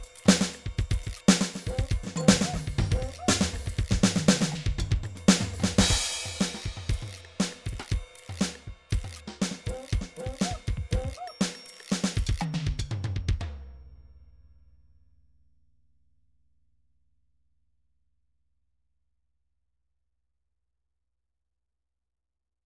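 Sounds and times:
rock drum groove MIDI loops: 0.0s - 13.5s.

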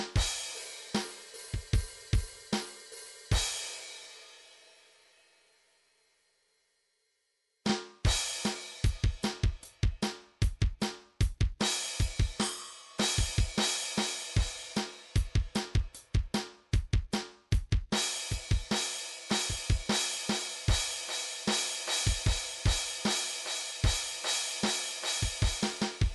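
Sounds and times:
MIDI hard rock drum beat: 0.0s - 4.2s, 7.7s - 26.1s
MIDI open hi-hat: 0.0s - 4.4s, 8.1s - 26.1s.

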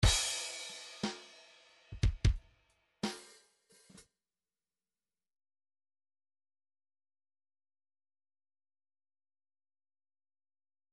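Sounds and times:
MIDI file groove in 3/4 time: 0.0s - 2.4s.

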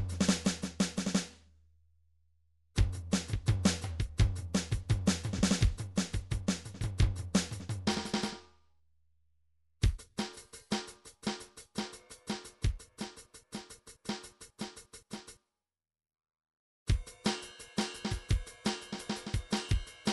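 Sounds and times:
MIDI hi-hat drums: 0.0s - 1.4s, 2.8s - 8.4s, 9.8s - 15.4s, 16.9s - 20.1s.

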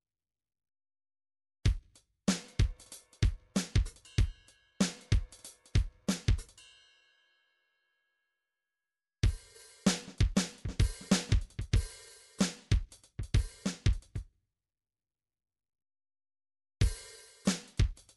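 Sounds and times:
MIDI drums: 1.7s - 6.6s, 9.2s - 14.2s, 16.8s - 18.1s.

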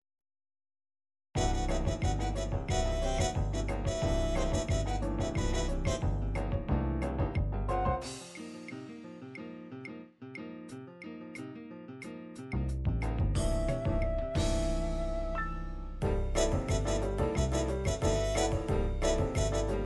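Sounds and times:
fast MIDI bossa nova music: 1.4s - 8.8s, 12.4s - 19.8s.

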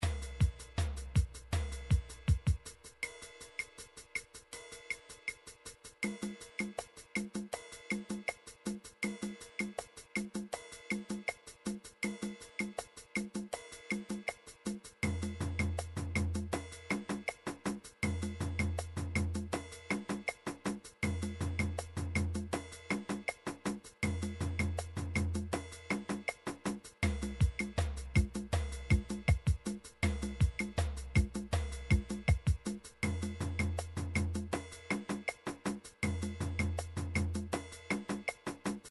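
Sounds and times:
drums: 0.0s - 38.9s.

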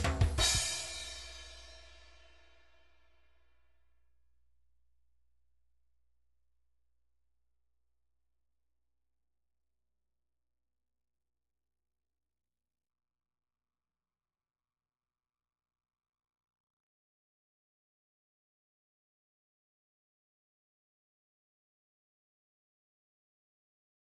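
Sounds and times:
shuffle drum groove MIDI loop: 0.0s - 1.6s.

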